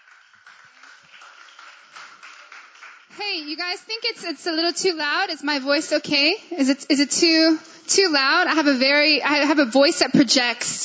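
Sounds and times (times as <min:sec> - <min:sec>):
audience applauding: 0:00.0 - 0:04.0
speech: 0:03.2 - 0:10.8.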